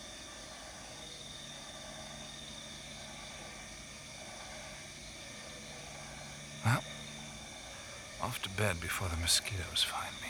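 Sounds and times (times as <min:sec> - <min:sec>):
frogs calling in rice fields: 0:06.1 - 0:10.2
speech: 0:08.3 - 0:10.2.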